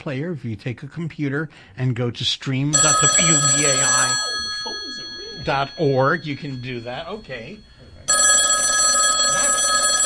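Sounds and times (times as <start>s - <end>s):
speech: 0.0s - 4.3s, 5.5s - 7.7s
electronic telephone ringing in a radio station's tally room: 2.7s - 10.0s.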